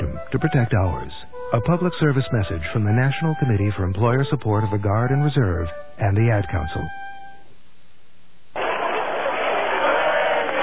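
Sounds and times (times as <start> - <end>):
speech: 0.3 - 7.1
crowd celebrating the opening of the Berlin Wall in 1989: 8.6 - 10.6.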